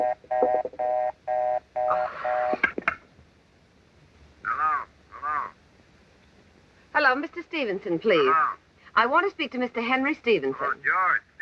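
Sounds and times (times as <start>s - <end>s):
telephone line ringing: 0.0s - 2.6s
speech: 7.1s - 11.2s.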